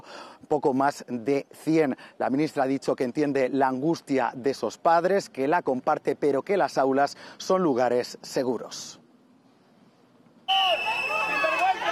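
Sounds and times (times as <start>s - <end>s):
speech: 0.4s - 9.0s
crowd whistling and protesting: 10.5s - 11.8s.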